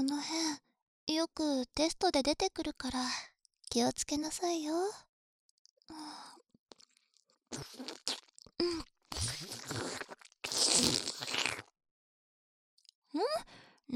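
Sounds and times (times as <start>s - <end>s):
speech: 1.1s - 5.1s, 7.5s - 11.7s, 13.1s - 13.9s
person eating ice cream with wet chewing, smacking and crunching: 6.7s - 8.6s, 9.2s - 11.7s.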